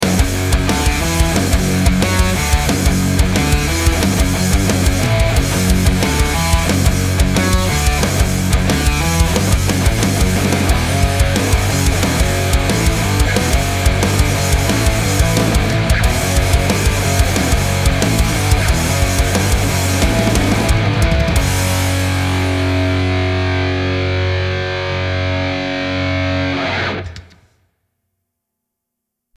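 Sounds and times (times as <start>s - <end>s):
energetic metal music: 0.0s - 27.4s.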